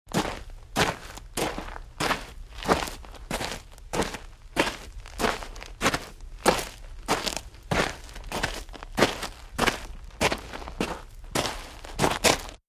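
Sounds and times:
western boots: 0.1 - 12.6.

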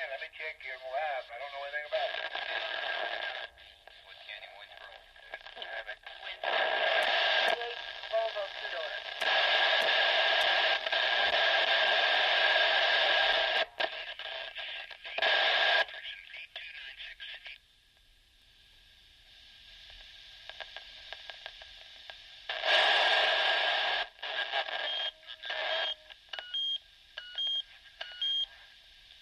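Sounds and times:
radio hash and static: 0.0 - 17.6, 22.5 - 26.0.

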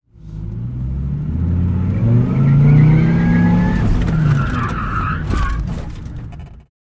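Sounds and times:
sports car accelerating quickly: 0.1 - 5.0.

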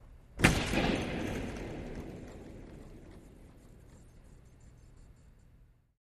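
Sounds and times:
hockey body hit with reverb: 0.4 - 4.3.

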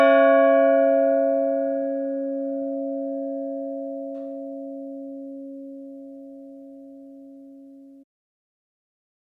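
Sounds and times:
large church bell tuned to C3: 0.0 - 7.8.

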